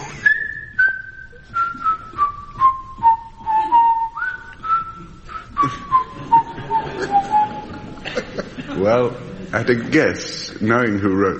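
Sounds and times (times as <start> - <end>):
person whistling in imitation of a budgerigar: 0.0 - 7.8
laughter: 5.0 - 9.5
speech: 8.8 - 11.3.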